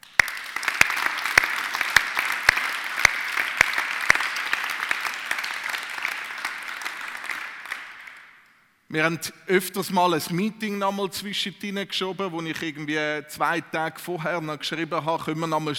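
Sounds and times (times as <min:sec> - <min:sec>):
audience applause: 0:00.0 - 0:08.3
speech: 0:08.9 - 0:15.7.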